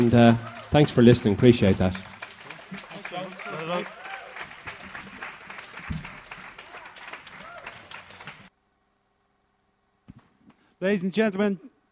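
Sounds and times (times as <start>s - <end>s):
speech: 0.0s - 2.1s, 10.8s - 11.7s
audience applause: 0.0s - 8.5s.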